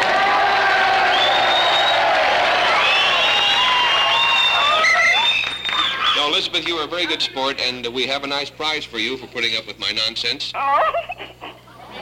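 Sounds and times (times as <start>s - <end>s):
crowd cheering and whooping in Durando's Bar: 0.0s - 6.3s
whistles: 1.0s - 6.2s
continuous clapping: 3.0s - 7.3s
speech: 6.6s - 11.1s
laughter: 10.6s - 12.0s.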